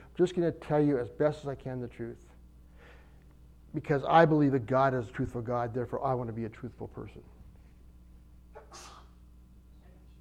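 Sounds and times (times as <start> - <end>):
faint steady hum: 0.0 - 10.1
speech: 0.2 - 2.3, 3.7 - 7.3
person sneezing: 8.5 - 9.2.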